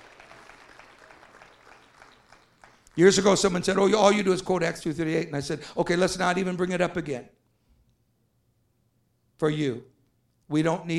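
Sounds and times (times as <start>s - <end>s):
audience clapping hands: 0.0s - 3.8s
speech: 3.0s - 7.4s, 9.4s - 9.9s, 10.5s - 10.9s.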